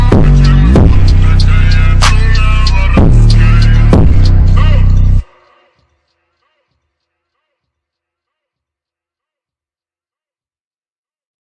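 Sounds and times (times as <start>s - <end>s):
Azeri bass music: 0.0s - 5.3s.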